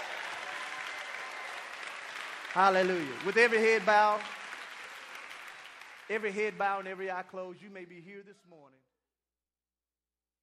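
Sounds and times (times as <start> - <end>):
audience hand clapping: 0.0 - 7.5
speech: 2.6 - 4.4, 6.1 - 8.9.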